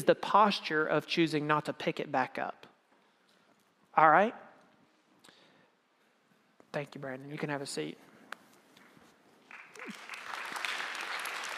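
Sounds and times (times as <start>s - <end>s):
speech: 0.0s - 2.7s, 4.0s - 4.4s, 6.7s - 8.1s
audience applause: 9.5s - 11.5s.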